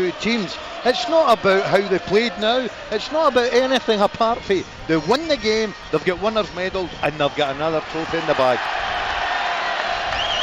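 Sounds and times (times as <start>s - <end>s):
speech: 0.0s - 8.8s
football fans cheering: 0.0s - 10.4s
whoops: 8.9s - 10.4s.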